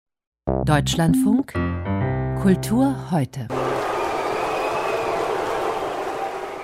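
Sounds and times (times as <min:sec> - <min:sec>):
speech: 0:00.7 - 0:03.6
opera festival audience whistling: 0:03.5 - 0:06.6.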